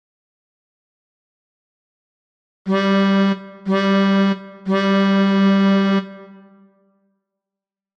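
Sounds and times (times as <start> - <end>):
melodica: 2.7 - 6.4.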